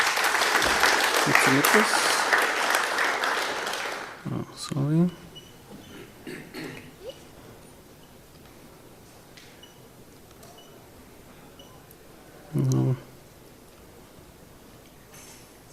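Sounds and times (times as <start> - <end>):
tech conference audience applause: 0.0 - 4.2
man speaking: 4.3 - 5.2, 12.5 - 13.1.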